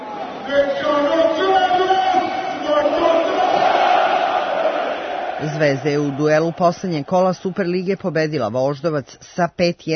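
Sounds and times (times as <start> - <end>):
speech: 0.5 - 1.4, 5.4 - 9.9
crowd chanting and singing at packed Rajko Mitić stadium in Belgrade: 1.3 - 7.9.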